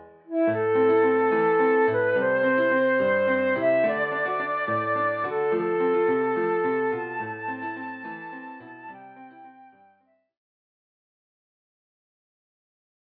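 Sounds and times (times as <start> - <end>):
flute melody: 0.3 - 10.2.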